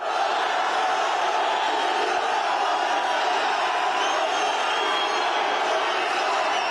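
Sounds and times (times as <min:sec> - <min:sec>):
fans chanting for footballer Mohamed Salah at Trabzon airport: 0:00.0 - 0:06.6.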